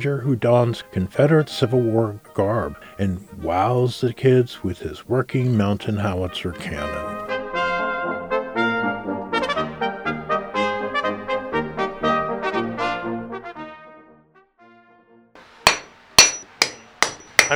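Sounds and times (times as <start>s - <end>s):
speech: 0.0s - 7.1s
short run of tuneful music: 0.0s - 17.5s
blacksmith's hammer striking metal: 15.7s - 17.5s.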